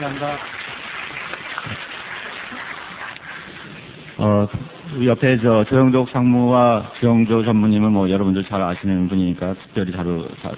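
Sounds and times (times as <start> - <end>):
speech: 0.0 - 1.9, 4.2 - 10.5
audience applause: 0.0 - 3.6.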